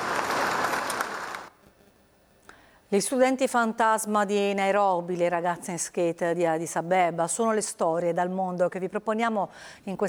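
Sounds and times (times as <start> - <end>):
audience applause in a hall at an Italian space agency gathering: 0.0 - 1.5
speech: 2.9 - 10.0.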